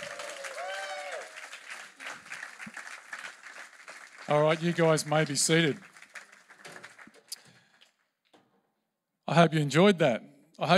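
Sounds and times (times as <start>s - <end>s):
audience applause: 0.0s - 7.9s
speech: 4.3s - 5.9s, 9.4s - 10.7s.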